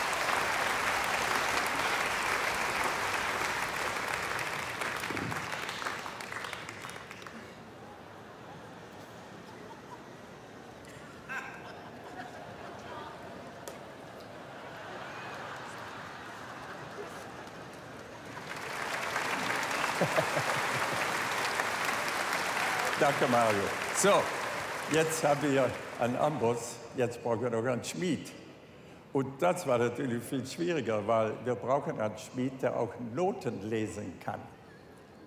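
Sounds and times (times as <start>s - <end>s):
audience applause: 0.0s - 7.8s, 14.6s - 26.6s
laughter: 8.5s - 13.6s, 14.3s - 17.9s, 19.3s - 22.0s
speech: 23.0s - 28.4s, 29.2s - 34.6s.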